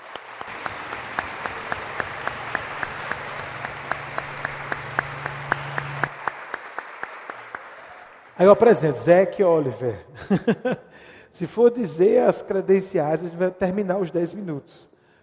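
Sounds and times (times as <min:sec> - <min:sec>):
crowd applauding: 0:00.0 - 0:08.9
speech: 0:08.4 - 0:14.9
laughter: 0:10.2 - 0:10.9.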